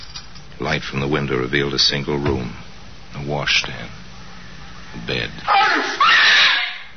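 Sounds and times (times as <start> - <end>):
speech: 0.6 - 4.0, 4.9 - 6.2
woman screaming: 5.5 - 6.9.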